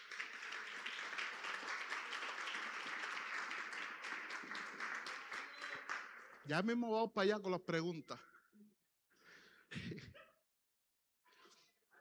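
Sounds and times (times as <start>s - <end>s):
audience applause: 0.0s - 6.5s
speech: 6.5s - 8.3s.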